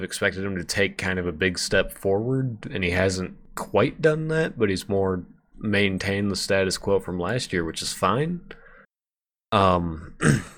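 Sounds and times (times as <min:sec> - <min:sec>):
speech: 0:00.0 - 0:08.6, 0:09.5 - 0:10.5
person clearing throat: 0:10.1 - 0:10.5.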